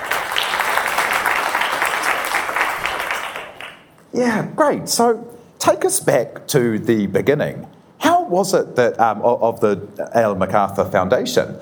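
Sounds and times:
audience applause welcoming a guest at a business school event: 0:00.0 - 0:03.9
speech: 0:04.1 - 0:11.5.

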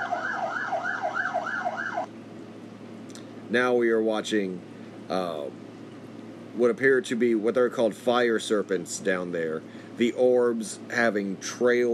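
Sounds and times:
emergency vehicle siren wailing in a city: 0:00.0 - 0:02.1
speech: 0:03.5 - 0:05.7, 0:06.6 - 0:11.9.

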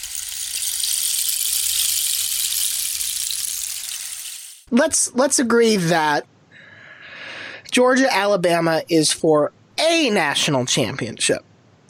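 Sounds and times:
rain stick: 0:00.0 - 0:04.7
speech: 0:04.7 - 0:06.3, 0:07.7 - 0:11.5.

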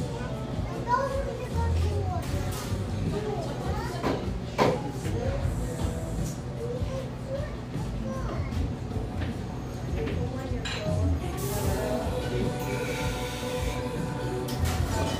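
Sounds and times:
children's voices: 0:00.0 - 0:04.2, 0:06.6 - 0:08.8
overlapping chatter in a busy café in east Portland: 0:00.0 - 0:15.1.

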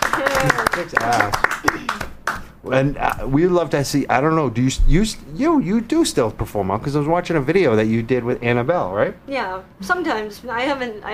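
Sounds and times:
small round of applause: 0:00.0 - 0:02.6
speech: 0:00.4 - 0:02.1, 0:02.7 - 0:11.1.

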